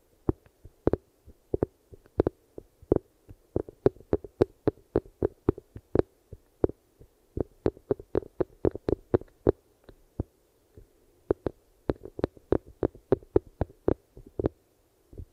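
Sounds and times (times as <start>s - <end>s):
eardrum massage sounds: 0.3s - 6.8s, 7.4s - 10.0s, 11.3s - 14.6s.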